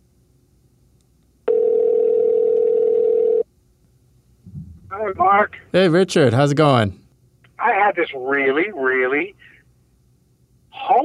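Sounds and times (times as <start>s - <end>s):
telephone dial tone on an outgoing call: 1.5s - 3.4s
speech: 5.0s - 7.0s, 7.9s - 9.5s, 10.8s - 11.0s.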